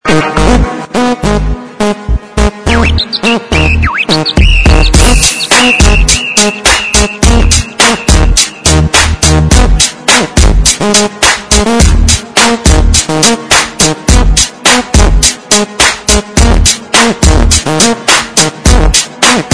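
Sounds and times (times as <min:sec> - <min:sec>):
bass: 0:00.1 - 0:19.5.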